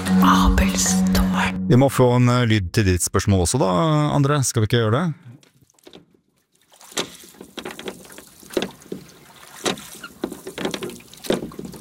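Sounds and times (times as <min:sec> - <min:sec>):
speech: 0:00.2 - 0:05.5
oars rowing a boat through water: 0:05.4 - 0:11.7.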